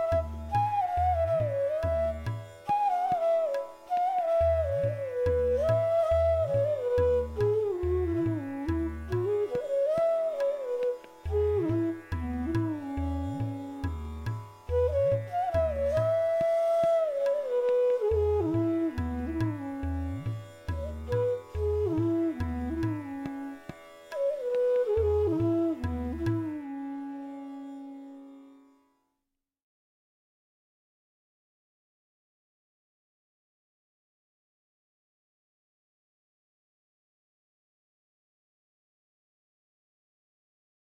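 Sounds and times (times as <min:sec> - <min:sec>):
flute playing a raga: 0:00.0 - 0:29.0.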